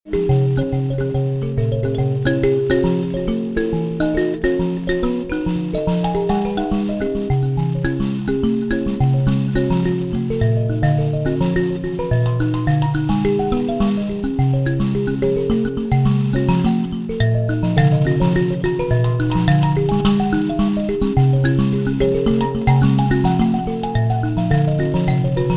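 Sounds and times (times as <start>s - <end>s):
mbira: 0.0s - 25.5s.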